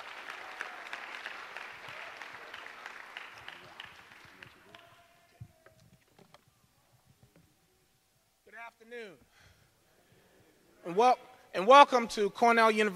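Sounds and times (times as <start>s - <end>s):
audience clapping at a hip-hop conference at a university: 0.0s - 5.4s
speech: 10.9s - 12.9s.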